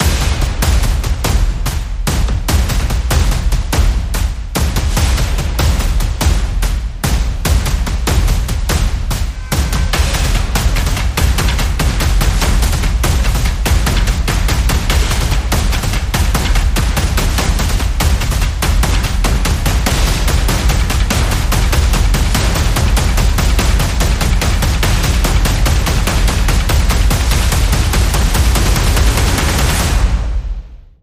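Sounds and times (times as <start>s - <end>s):
percussion: 0.0s - 30.9s.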